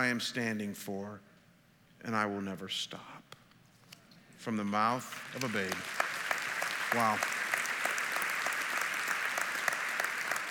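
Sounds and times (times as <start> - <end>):
speech: 0.0 - 1.3, 2.0 - 3.3, 4.4 - 6.0, 6.9 - 7.3
audience applause: 5.1 - 10.4.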